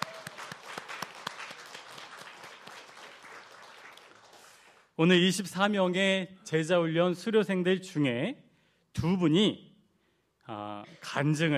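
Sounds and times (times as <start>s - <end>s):
audience applause: 0.0s - 4.9s
speech: 5.0s - 8.4s, 9.0s - 9.7s, 10.5s - 11.5s.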